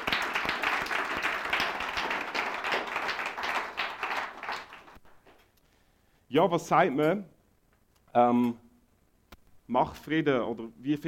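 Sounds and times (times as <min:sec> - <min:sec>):
audience applause: 0:00.0 - 0:05.0
speech: 0:06.3 - 0:07.3, 0:08.1 - 0:08.6, 0:09.7 - 0:11.0.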